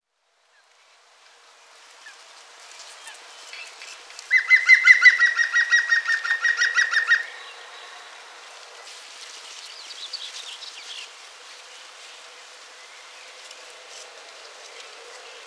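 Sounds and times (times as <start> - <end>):
European green woodpecker laughing call: 4.3 - 7.4.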